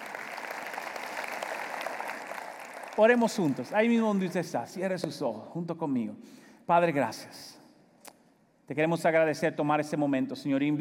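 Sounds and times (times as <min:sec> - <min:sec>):
audience applause: 0:00.0 - 0:04.6
speech: 0:03.0 - 0:07.6, 0:08.7 - 0:10.7.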